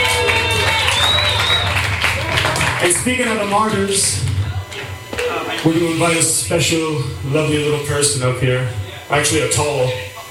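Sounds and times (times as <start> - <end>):
audience clapping at a tribute concert: 0.0 - 5.8
crowd noise at a tribute concert: 0.0 - 10.2
speech: 2.9 - 4.3, 5.2 - 10.1.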